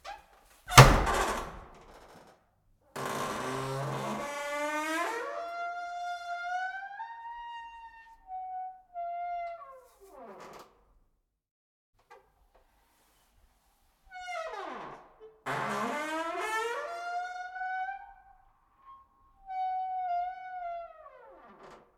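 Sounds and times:
old wooden entrance door creaking: 0:00.0 - 0:02.4, 0:03.0 - 0:07.9, 0:09.2 - 0:10.8, 0:14.2 - 0:21.9
old wooden entrance door hits: 0:00.7 - 0:01.9.

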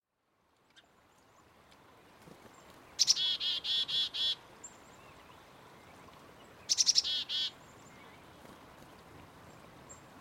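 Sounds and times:
black-capped chickadee calls: 0:03.0 - 0:04.4, 0:06.7 - 0:07.6.

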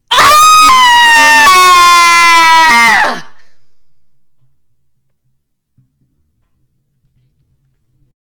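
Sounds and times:
woman screaming: 0:00.1 - 0:03.4.

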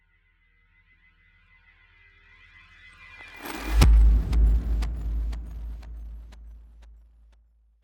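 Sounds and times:
trailer hit: 0:03.4 - 0:06.7.

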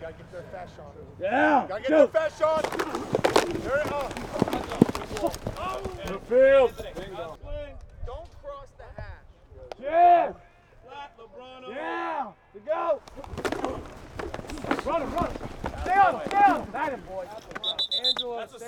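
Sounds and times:
football practice pads hitting: 0:01.4 - 0:07.4, 0:13.0 - 0:18.4.

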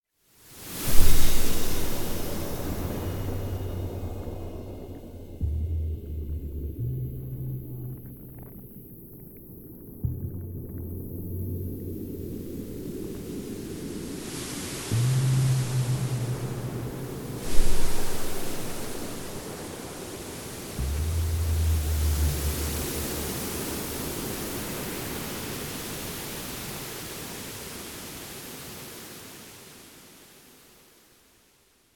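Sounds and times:
water: 0:00.2 - 0:31.9.

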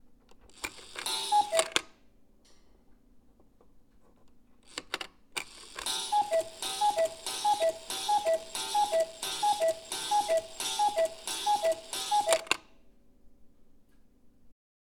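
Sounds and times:
cuckoo clock: 0:00.6 - 0:01.9, 0:05.4 - 0:12.6.

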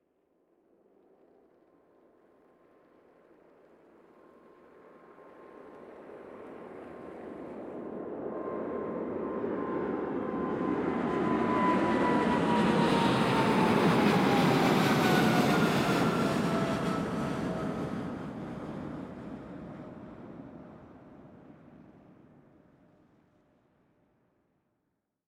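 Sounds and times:
jet landing flyover: 0:03.6 - 0:22.6.

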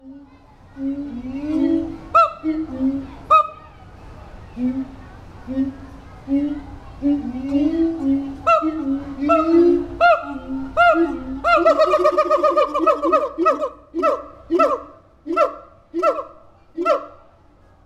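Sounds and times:
siamang gibbon hooting and barking: 0:01.4 - 0:03.6, 0:07.2 - 0:17.2.

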